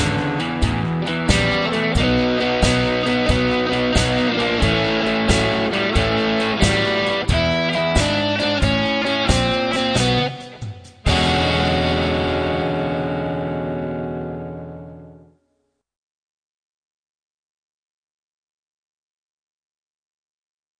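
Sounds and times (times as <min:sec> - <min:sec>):
rock tune with rock and blues solos: 0:00.0 - 0:15.2.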